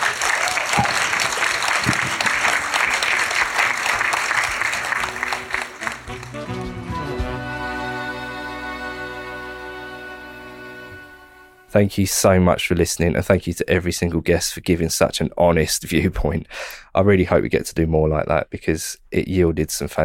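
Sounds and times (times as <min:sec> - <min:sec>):
audience applause: 0:00.0 - 0:07.3
sustained tonal music: 0:05.0 - 0:11.7
speech: 0:11.8 - 0:20.0.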